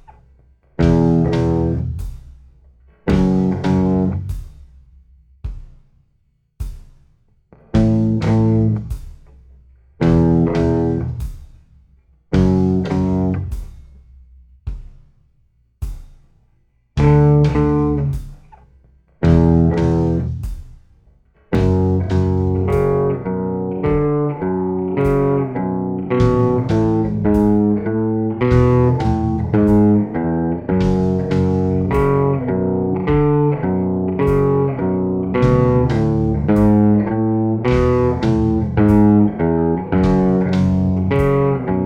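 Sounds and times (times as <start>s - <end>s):
slow guitar riff: 0.8s - 2.0s, 3.1s - 4.3s, 7.8s - 8.9s, 10.0s - 11.2s, 12.4s - 13.5s, 17.0s - 18.2s, 19.2s - 20.4s, 21.6s - 41.8s.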